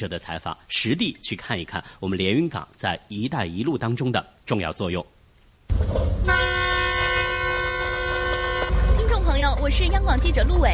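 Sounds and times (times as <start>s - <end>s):
speech: 0.0s - 5.1s, 9.6s - 10.7s
train horn blaring: 6.2s - 9.0s.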